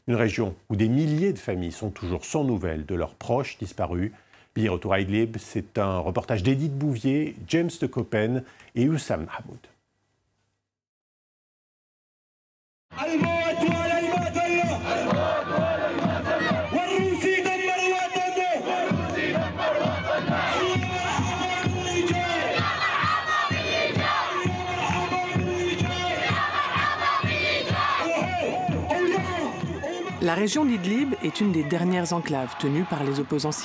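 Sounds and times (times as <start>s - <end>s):
speech: 0.1s - 9.7s, 30.3s - 33.6s
crowd chanting revolutionary songs at rally: 13.0s - 33.6s.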